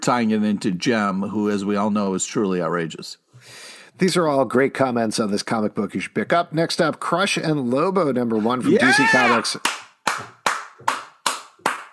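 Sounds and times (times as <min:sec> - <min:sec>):
speech: 0:00.0 - 0:10.3
single person clapping: 0:09.5 - 0:11.9.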